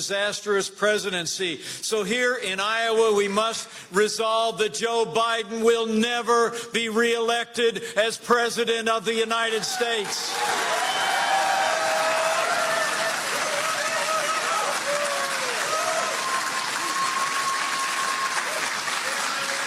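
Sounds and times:
speech: 0:00.0 - 0:10.8
crowd standing ovation applause: 0:10.0 - 0:19.6
faint cheers and whistles: 0:10.3 - 0:19.6.

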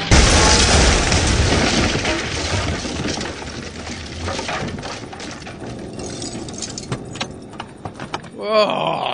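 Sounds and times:
motorhome crashing through a door: 0:00.0 - 0:07.4
debris clattering: 0:00.0 - 0:08.4
metallic clinks and rattles: 0:04.3 - 0:07.4.

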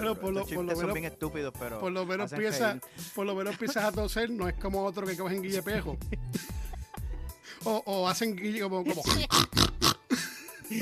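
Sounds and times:
speech: 0:00.1 - 0:06.6, 0:07.6 - 0:09.7
laughter: 0:03.4 - 0:04.1, 0:05.5 - 0:07.2, 0:10.1 - 0:10.8
person imitating pig snorts: 0:08.9 - 0:10.2.

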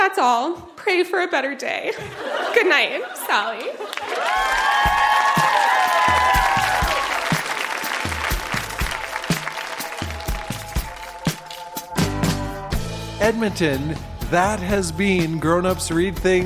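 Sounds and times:
speech: 0:00.1 - 0:05.5, 0:13.2 - 0:16.4
laughter: 0:01.9 - 0:07.3
large audience applause with cheers and whoops: 0:03.8 - 0:12.5.

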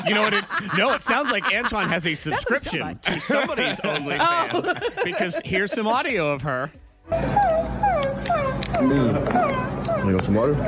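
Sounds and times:
laughter: 0:00.0 - 0:06.6
speech: 0:00.0 - 0:07.5, 0:08.8 - 0:10.6
dog whimpering and howling: 0:07.1 - 0:10.6.

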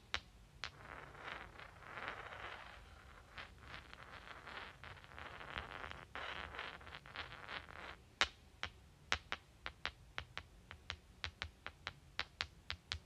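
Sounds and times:
stones clicking against each other: 0:00.1 - 0:13.0
rocks rubbing together: 0:00.6 - 0:08.0.

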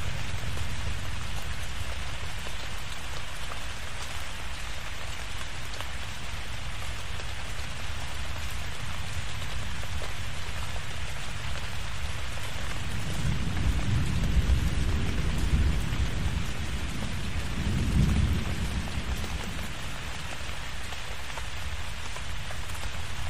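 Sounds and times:
steady dense rain in a tropical thunderstorm: 0:00.0 - 0:23.2
low rumble of thunder: 0:12.8 - 0:20.5.

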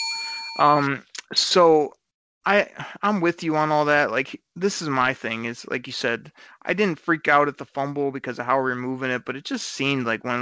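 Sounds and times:
bell ringing: 0:00.0 - 0:00.9
wordless vocal sounds: 0:00.6 - 0:01.9, 0:02.5 - 0:10.4
speech: 0:00.6 - 0:10.4.

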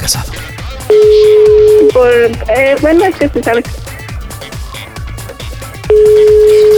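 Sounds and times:
telephone tone after hang-up: 0:00.9 - 0:02.2, 0:05.9 - 0:06.7
speech: 0:02.0 - 0:03.8, 0:06.0 - 0:06.7.

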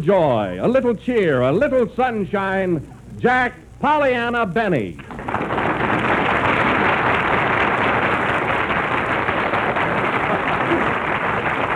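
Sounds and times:
speech: 0:00.0 - 0:05.5
studio audience applause: 0:05.0 - 0:11.7.

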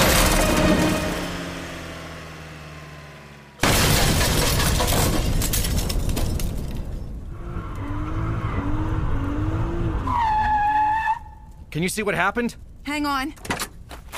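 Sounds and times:
car crash of crunching metal and shattering debris: 0:00.0 - 0:01.4, 0:03.6 - 0:07.3
car engine roaring as it goes over a cliff: 0:00.0 - 0:05.9, 0:07.1 - 0:11.7
speech: 0:11.8 - 0:13.6.

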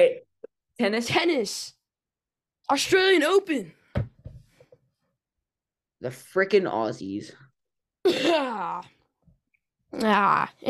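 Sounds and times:
speech: 0:00.8 - 0:01.8, 0:02.7 - 0:03.8, 0:06.0 - 0:07.4, 0:08.0 - 0:09.0, 0:09.9 - 0:10.6
fake cough: 0:08.0 - 0:08.8.

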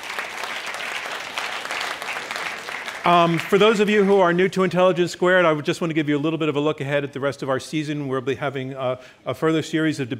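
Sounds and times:
audience clapping: 0:00.0 - 0:04.5
speech: 0:03.0 - 0:10.1.

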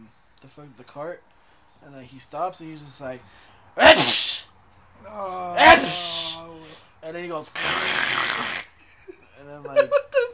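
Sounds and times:
speech: 0:00.4 - 0:04.4, 0:05.0 - 0:06.1, 0:07.0 - 0:08.6, 0:09.4 - 0:10.0
voice imitating sneezes: 0:03.8 - 0:04.5, 0:05.3 - 0:06.8, 0:07.5 - 0:08.8.

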